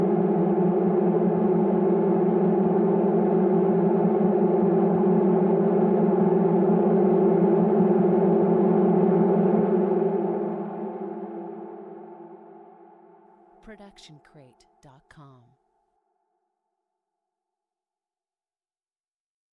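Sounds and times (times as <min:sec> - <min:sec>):
descending and rising ambience: 0:00.0 - 0:13.8.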